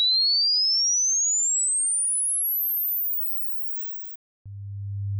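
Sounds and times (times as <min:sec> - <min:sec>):
test signal tone: 0:02.4 - 0:04.1.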